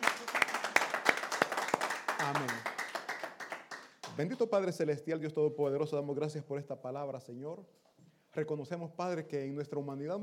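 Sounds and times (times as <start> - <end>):
audience applause: 0.0 - 4.0
speech: 2.2 - 2.6, 4.2 - 10.2.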